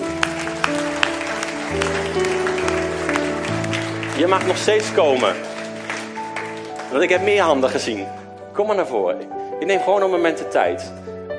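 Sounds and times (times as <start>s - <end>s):
audience applause: 0.0s - 7.8s
speech: 4.2s - 5.5s, 6.9s - 11.0s.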